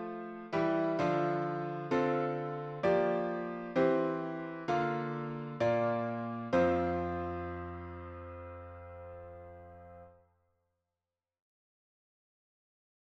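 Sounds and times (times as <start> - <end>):
piano synth: 0.0 - 10.1.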